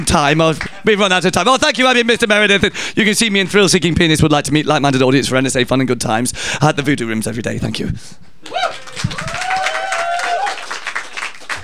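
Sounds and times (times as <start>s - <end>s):
speech: 0.0s - 9.2s
audience applause: 8.4s - 11.6s.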